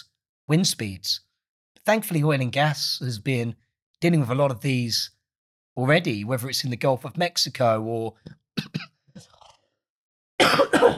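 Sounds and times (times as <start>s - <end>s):
speech: 0.5s - 5.2s, 5.8s - 8.4s
person sneezing: 10.4s - 10.9s.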